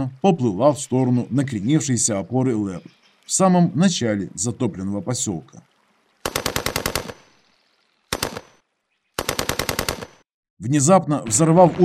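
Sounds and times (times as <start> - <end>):
speech: 0.0 - 5.7, 10.6 - 11.8
machine gun bursts: 6.2 - 7.3, 8.1 - 8.6, 9.2 - 10.2.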